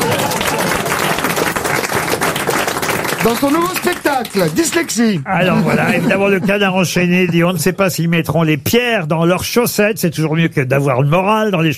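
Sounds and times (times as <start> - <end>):
loud dense audience applause: 0.0 - 6.4
speech: 3.2 - 11.7
laughter: 5.3 - 8.0.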